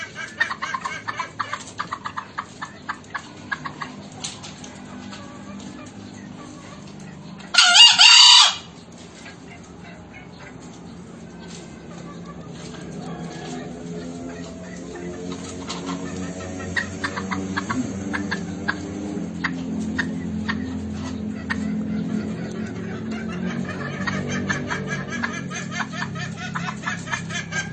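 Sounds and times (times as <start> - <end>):
green junglefowl clucking: 0.0 - 27.7.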